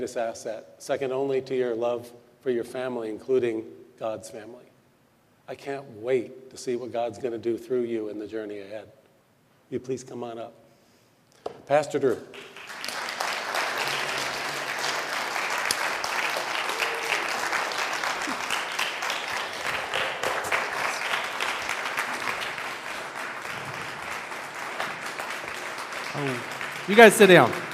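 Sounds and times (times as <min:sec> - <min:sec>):
speech: 0:00.0 - 0:04.7, 0:05.5 - 0:09.0, 0:09.7 - 0:10.6, 0:11.7 - 0:12.5, 0:26.9 - 0:27.6
audience applause: 0:12.4 - 0:27.7.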